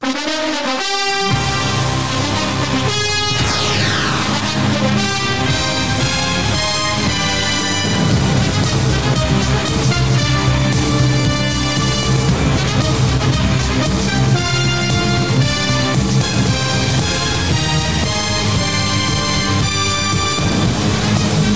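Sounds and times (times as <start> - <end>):
NFL football music: 0.0 - 21.5.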